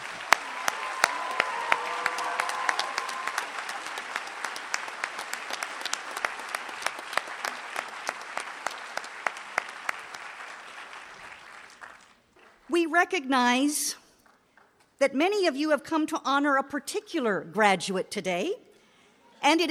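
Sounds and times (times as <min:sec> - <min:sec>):
audience applause for graduation staff: 0:00.0 - 0:15.5
speech: 0:12.8 - 0:14.0, 0:15.0 - 0:18.6, 0:19.4 - 0:19.6.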